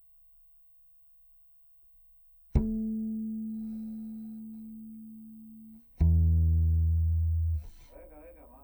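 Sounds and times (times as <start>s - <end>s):
bass guitar C note through DI: 2.6s - 7.9s.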